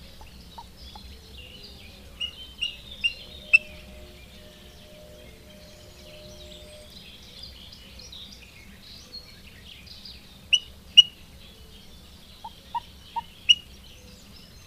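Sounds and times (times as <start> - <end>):
common moorhen calls: 0.0 - 7.2, 10.5 - 11.2, 12.4 - 13.7.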